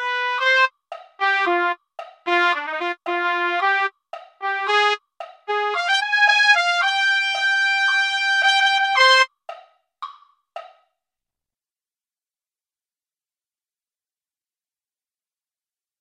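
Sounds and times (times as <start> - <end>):
trumpet: 0.0 - 9.3.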